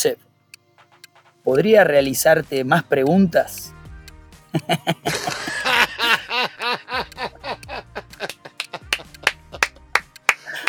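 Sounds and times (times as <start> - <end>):
speech: 0.0 - 0.3, 1.4 - 3.8, 4.5 - 5.6
laughter: 4.5 - 9.7, 10.4 - 10.6
applause: 8.3 - 10.6.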